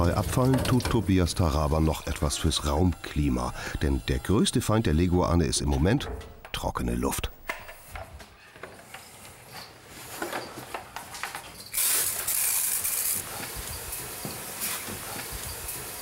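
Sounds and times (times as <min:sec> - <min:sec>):
speech: 0:00.0 - 0:07.4
hot water spraying from a nozzle to raise humidity: 0:11.7 - 0:16.0.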